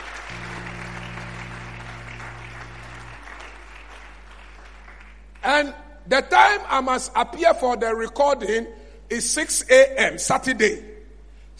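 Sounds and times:
audience clapping: 0:00.0 - 0:05.6
low steady hum: 0:00.0 - 0:11.5
speech: 0:05.5 - 0:10.9.

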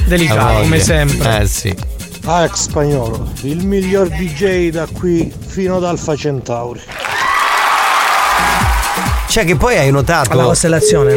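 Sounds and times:
speech: 0:00.1 - 0:07.0, 0:09.3 - 0:11.1
fake applause sound effect: 0:06.9 - 0:09.6.

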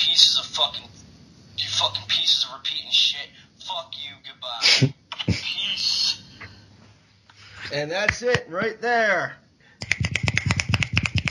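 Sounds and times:
speech: 0:00.1 - 0:01.0, 0:01.8 - 0:06.0, 0:07.6 - 0:09.4
beatnik-style finger snapping applause: 0:09.8 - 0:11.2.

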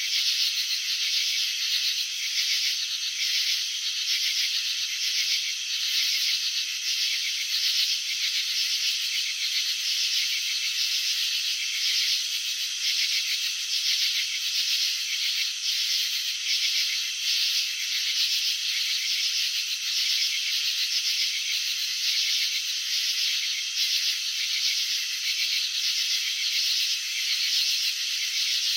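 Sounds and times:
crickets chirping: 0:00.0 - 0:28.7.

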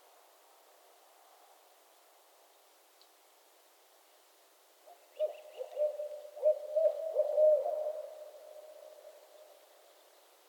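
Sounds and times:
owl hooting: 0:05.2 - 0:08.9.

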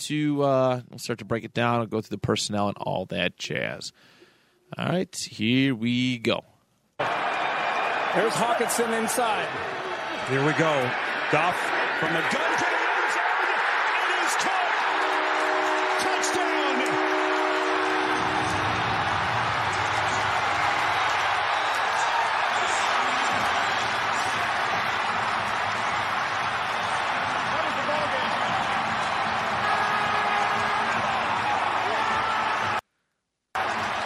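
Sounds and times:
speech: 0:00.0 - 0:07.4, 0:08.1 - 0:12.7
stadium crowd roaring: 0:07.0 - 0:32.8, 0:33.6 - 0:34.0.

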